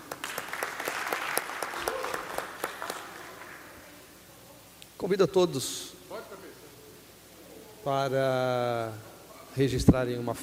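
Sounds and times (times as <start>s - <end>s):
audience applause: 0.0s - 3.9s
speech: 5.0s - 6.0s, 7.8s - 10.4s.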